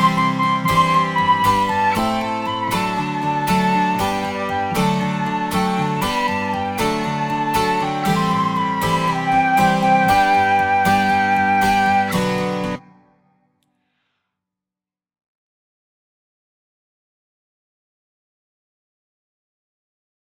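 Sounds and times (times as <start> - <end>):
instrumental music: 0.0 - 13.3.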